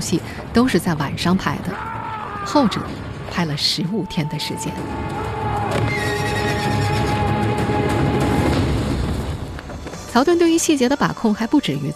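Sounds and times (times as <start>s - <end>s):
speech: 0.0s - 6.0s, 10.1s - 11.9s
galloping hooves and wheels of a horse-drawn carriage: 4.7s - 10.3s
horses whinnying: 5.0s - 7.7s.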